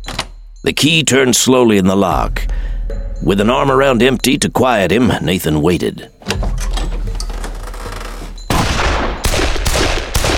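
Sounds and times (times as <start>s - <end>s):
speech: 0.6s - 6.5s
gunshots fired from the floor: 8.5s - 10.3s.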